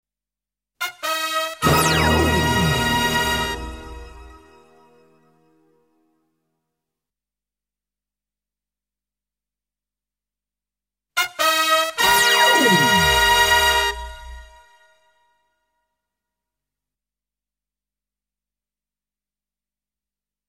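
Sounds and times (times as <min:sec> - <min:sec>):
power fanfare: 0:01.3 - 0:04.3, 0:11.4 - 0:14.5.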